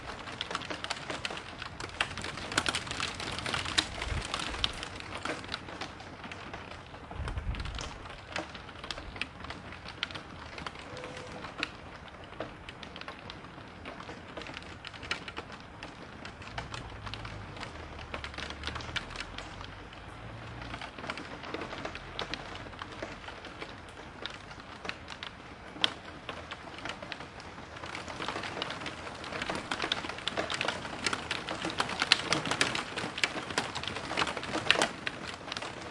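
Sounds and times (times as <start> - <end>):
rain in a city: 0.0 - 35.8
sirens: 10.6 - 12.0.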